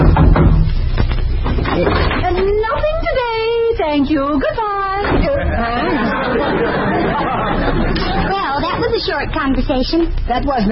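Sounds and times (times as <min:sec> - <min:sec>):
knocking on a door: 0:00.0 - 0:00.7
low hum and hiss: 0:00.0 - 0:10.6
laughter: 0:05.1 - 0:08.9
speech: 0:09.1 - 0:10.6.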